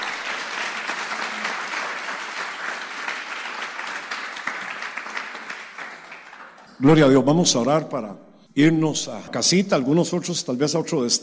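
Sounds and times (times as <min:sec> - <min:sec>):
audience applause: 0:00.0 - 0:06.8
speech: 0:06.8 - 0:11.2.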